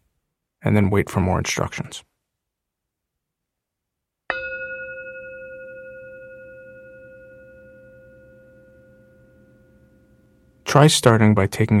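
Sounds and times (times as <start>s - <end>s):
speech: 0.6s - 2.1s, 10.7s - 11.7s
meditation bell ringing: 4.3s - 10.7s.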